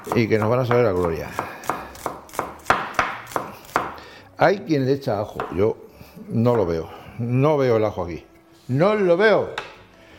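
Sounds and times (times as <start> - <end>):
speech: 0.0 - 1.5, 4.4 - 9.6
knife chopping onion finely on a board: 0.0 - 4.0.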